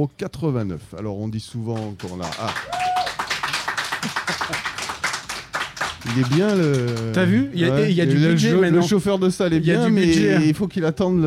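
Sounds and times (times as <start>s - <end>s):
speech: 0.0s - 2.9s, 4.0s - 4.8s, 6.0s - 11.2s
live studio audience clapping in a steady fast rhythm: 1.7s - 7.6s.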